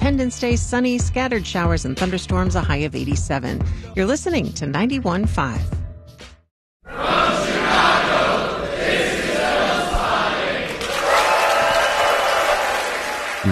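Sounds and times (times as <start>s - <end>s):
speech: 0.1s - 5.8s
packed theater crowd cheering: 6.9s - 13.5s
packed theater crowd applauding: 9.3s - 13.5s.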